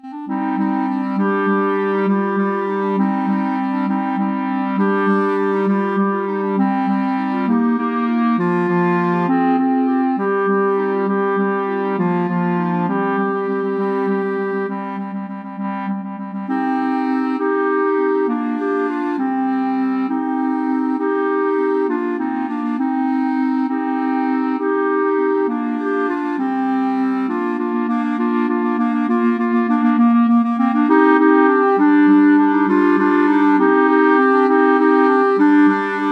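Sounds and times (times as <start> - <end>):
clarinet choir: 0.0 - 36.1.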